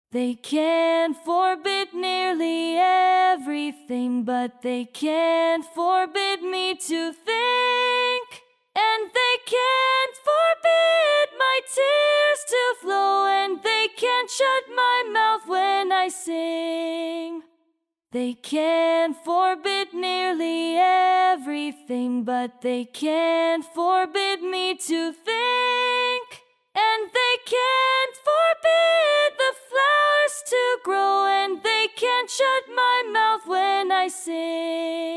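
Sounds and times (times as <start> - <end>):
upper harmony vocal: 0.1 - 17.5, 18.2 - 35.1.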